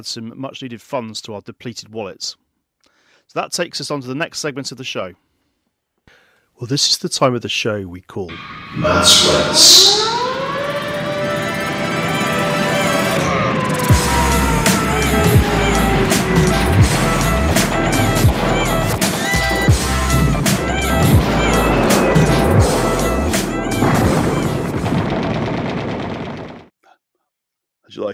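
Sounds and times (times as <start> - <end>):
speech: 0.0 - 2.4, 3.3 - 5.3, 6.6 - 10.1, 28.0 - 28.1
loud driving musical backing of a show jingle: 8.8 - 24.8
machine gun fire in a podcast segment jingle: 16.1 - 26.7.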